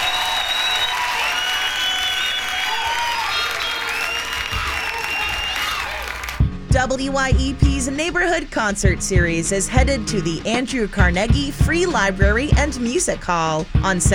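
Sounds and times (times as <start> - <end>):
audience applause for a singer: 0.0 - 6.4
speech: 6.8 - 14.1.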